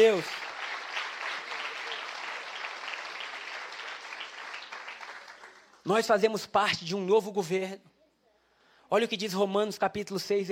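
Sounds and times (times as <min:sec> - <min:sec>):
speech: 0:00.0 - 0:00.4, 0:05.8 - 0:07.9, 0:08.9 - 0:10.5
audience applauding: 0:00.0 - 0:05.9.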